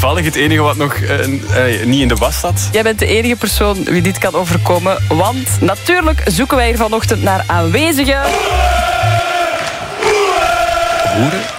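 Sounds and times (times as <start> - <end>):
speech: 0.1 - 9.2, 11.2 - 11.5
football supporters chanting in unison: 8.1 - 11.5.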